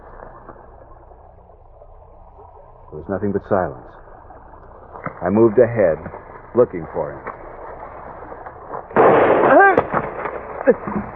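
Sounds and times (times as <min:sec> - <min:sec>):
speech: 0:02.9 - 0:04.0, 0:05.2 - 0:07.3, 0:10.6 - 0:11.1
gunshot: 0:08.9 - 0:11.1.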